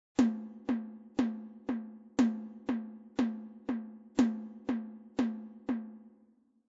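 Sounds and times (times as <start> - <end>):
four-beat rhythm: 0.2 - 6.2.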